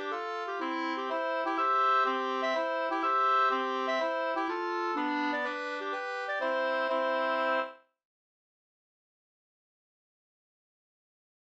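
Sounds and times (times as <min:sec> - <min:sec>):
two-part polska dance tune: 0:00.0 - 0:07.8.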